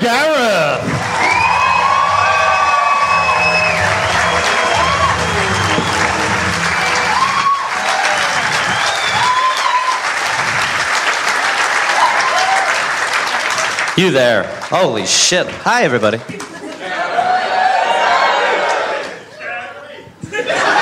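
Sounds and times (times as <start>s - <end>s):
speech: 0.0s - 0.5s, 14.0s - 16.5s
live comedy audience applause at the Comics Lounge: 0.0s - 19.1s
comedy audience shouts and whoops at the Comics Lounge: 0.8s - 10.5s, 11.9s - 12.9s, 16.9s - 19.1s
laughter: 16.3s - 17.3s, 20.2s - 20.8s.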